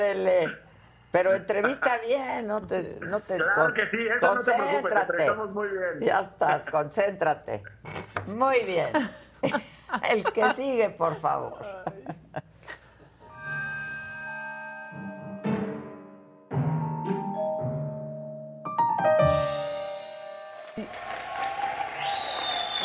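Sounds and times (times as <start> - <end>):
speech: 0.0 - 12.8
laughter: 8.7 - 12.9
tonal music-like sounds: 13.2 - 20.8
small crowd applauding: 20.5 - 22.8.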